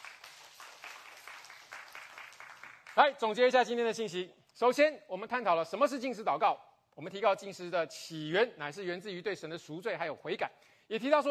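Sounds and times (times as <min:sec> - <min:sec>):
audience clapping: 0:00.0 - 0:03.2
speech: 0:03.0 - 0:11.2.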